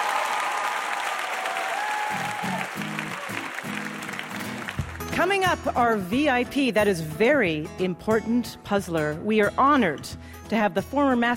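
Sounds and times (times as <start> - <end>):
faint whoops: 0.0 - 4.8
audience applause: 0.0 - 5.1
speech: 5.2 - 11.3.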